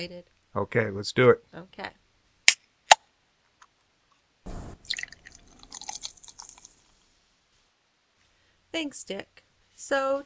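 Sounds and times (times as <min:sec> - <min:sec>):
speech: 0:00.0 - 0:02.0, 0:08.7 - 0:10.2
can opening: 0:04.5 - 0:06.9
drink pouring: 0:04.7 - 0:07.0.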